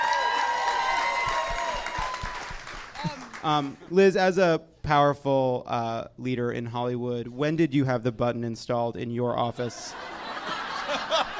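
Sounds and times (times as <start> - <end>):
audience applause: 0.0 - 3.8
speech: 3.0 - 10.1
laughter: 9.6 - 11.3.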